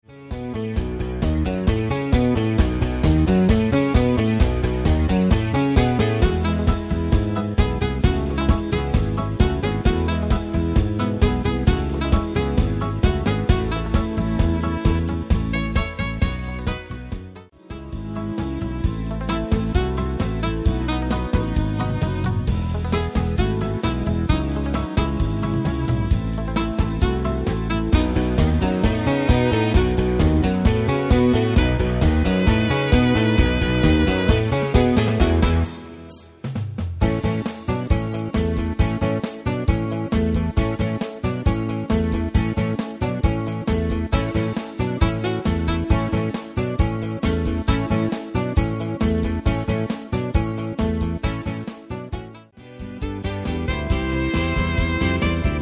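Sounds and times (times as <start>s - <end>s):
1960s beat music: 0.0s - 55.6s.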